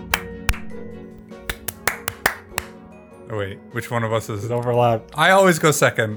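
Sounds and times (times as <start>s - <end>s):
hands clapping: 0.0s - 2.8s
speech: 3.3s - 6.1s.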